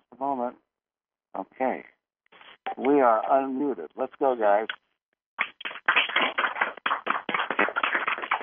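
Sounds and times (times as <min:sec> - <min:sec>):
speech: 0:02.8 - 0:04.8
scattered clapping over phone lines: 0:05.4 - 0:08.4.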